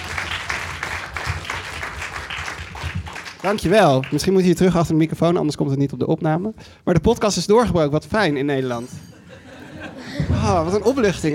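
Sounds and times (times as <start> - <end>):
audience applause: 0.0 - 4.3
speech: 3.4 - 9.1, 10.4 - 11.3
laughter: 8.3 - 11.3.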